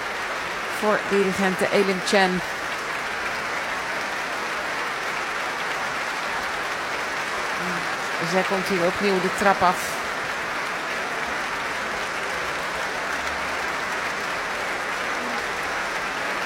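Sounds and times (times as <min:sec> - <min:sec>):
audience applause, standing ovation: 0:00.0 - 0:16.4
speech: 0:00.8 - 0:02.6, 0:08.2 - 0:10.0.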